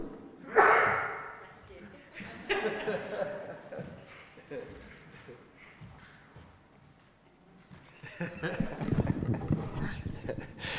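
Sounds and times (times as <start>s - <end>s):
person sneezing away from the microphone: 0.5s - 1.4s
laughter: 2.1s - 5.8s, 7.8s - 10.7s.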